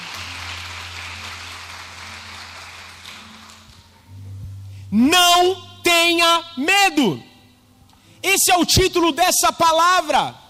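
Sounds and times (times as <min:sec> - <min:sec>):
audience applause: 0:00.0 - 0:03.8
speech: 0:04.9 - 0:07.3, 0:08.2 - 0:10.4.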